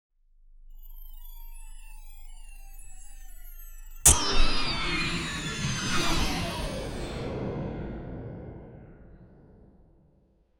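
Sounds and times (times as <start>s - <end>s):
magical spell backfiring on the caster: 4.1s - 8.2s.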